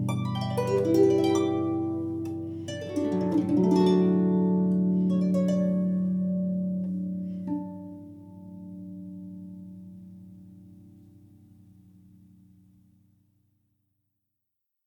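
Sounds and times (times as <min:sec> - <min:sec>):
harp sound clouds: 0:00.0 - 0:11.4.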